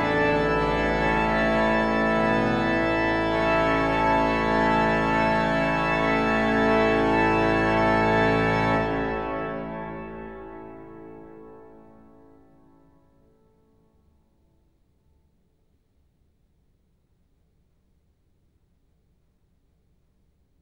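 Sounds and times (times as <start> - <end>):
organ fugue: 0.0 - 13.0.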